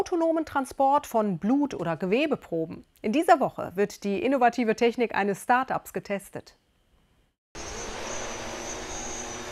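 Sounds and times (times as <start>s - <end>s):
speech: 0.0s - 6.6s
transport drone taking off: 7.6s - 9.4s.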